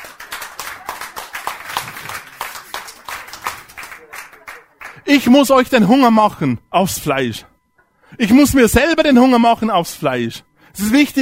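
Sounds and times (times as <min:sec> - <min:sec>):
applause: 0:00.0 - 0:05.3
speech: 0:05.1 - 0:07.5, 0:08.2 - 0:11.2.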